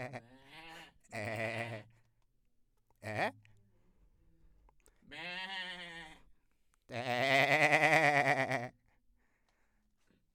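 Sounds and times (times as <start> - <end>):
goat bleating: 0.0 - 1.9, 5.1 - 6.2, 6.9 - 8.8.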